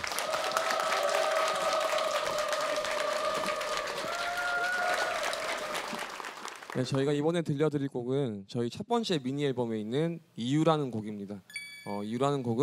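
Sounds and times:
audience applause: 0.0 - 7.0
speech: 6.8 - 12.6.

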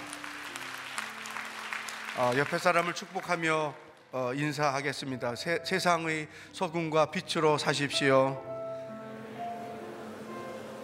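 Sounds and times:
audience applauding: 0.0 - 4.1
speech: 2.2 - 8.5.

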